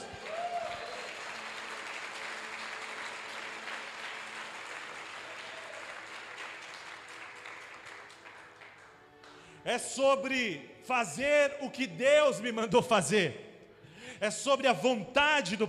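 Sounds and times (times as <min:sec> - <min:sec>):
audience applause: 0:00.0 - 0:09.5
speech: 0:09.6 - 0:13.4, 0:14.2 - 0:15.6.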